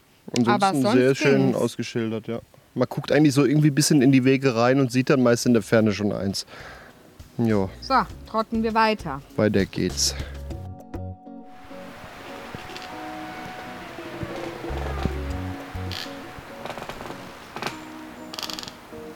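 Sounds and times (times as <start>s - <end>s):
speech: 0.3s - 6.8s, 7.4s - 10.4s
steady windy rush: 11.4s - 18.2s
trees creaking and squealing in the wind: 11.5s - 19.1s
low rumble: 13.4s - 17.4s.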